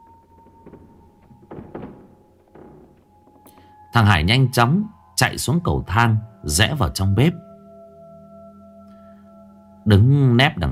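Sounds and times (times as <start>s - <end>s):
door creaking open: 0.0s - 3.8s
speech: 3.9s - 7.4s, 9.8s - 10.6s.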